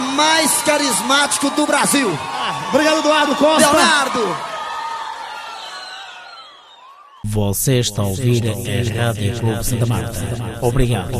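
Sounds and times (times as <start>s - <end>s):
crowd cheering and whooping: 0.0s - 7.2s
speech: 0.2s - 4.5s, 7.4s - 11.1s.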